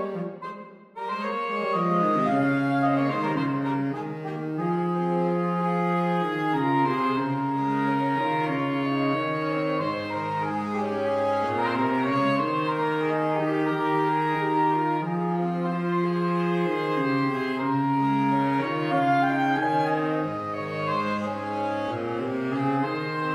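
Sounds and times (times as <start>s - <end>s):
saxophone trio playing: 0.0s - 23.3s.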